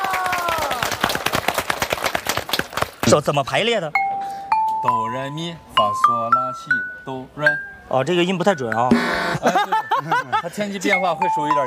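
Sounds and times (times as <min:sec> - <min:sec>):
applause: 0:00.0 - 0:03.2
speech: 0:03.1 - 0:04.0, 0:04.8 - 0:11.6
laughter: 0:09.4 - 0:10.8.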